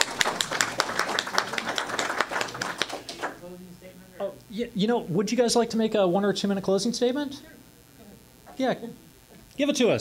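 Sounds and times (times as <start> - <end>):
audience applause: 0.0 - 3.4
speech: 4.6 - 7.6, 8.6 - 9.0, 9.6 - 9.9.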